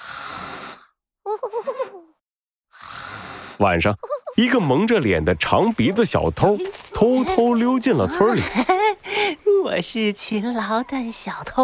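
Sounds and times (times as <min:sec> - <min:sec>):
snoring: 0:00.0 - 0:01.0, 0:02.7 - 0:03.6
speech: 0:03.6 - 0:08.8, 0:09.6 - 0:11.6
laughter: 0:07.1 - 0:09.3.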